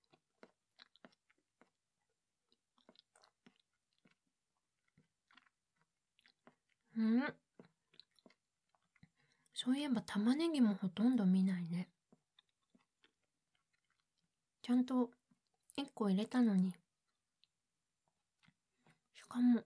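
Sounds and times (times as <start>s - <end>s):
person chewing a big helping of food with carrots: 0.0s - 9.5s, 12.1s - 14.2s, 18.4s - 19.0s
speech: 7.0s - 7.4s, 9.6s - 11.9s, 14.7s - 15.2s, 15.8s - 16.8s, 19.3s - 19.6s.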